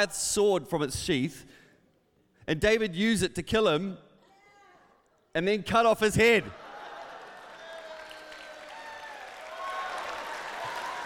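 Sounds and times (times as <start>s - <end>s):
speech: 0.0s - 1.6s, 2.5s - 4.0s, 5.3s - 6.6s
audience clapping: 6.7s - 11.0s.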